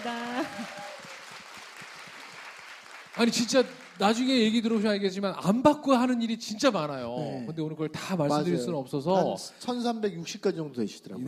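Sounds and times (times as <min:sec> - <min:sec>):
speech: 0:00.0 - 0:00.9, 0:03.2 - 0:11.2
audience applause: 0:00.0 - 0:05.1.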